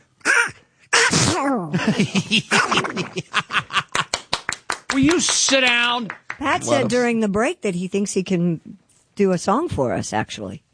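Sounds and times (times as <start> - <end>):
man imitating Donald Duck-style cartoon duck sneezing: 0.2 - 1.7
speech: 1.4 - 3.8, 5.0 - 10.6
laughter: 1.8 - 4.3.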